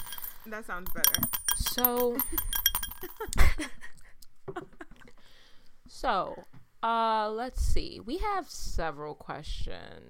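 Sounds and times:
coins shaken in a small glass: 0:00.0 - 0:03.3
speech: 0:00.4 - 0:03.9, 0:04.5 - 0:04.8, 0:05.9 - 0:10.0.

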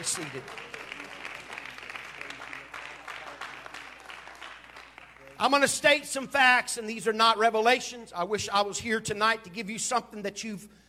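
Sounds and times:
speech: 0:00.0 - 0:00.8, 0:05.4 - 0:10.8
audience clapping hands: 0:00.0 - 0:05.5.

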